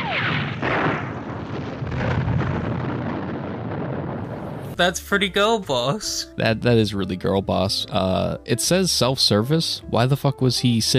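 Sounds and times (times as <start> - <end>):
gas station explosion: 0.0 - 4.8
speech: 4.8 - 10.9.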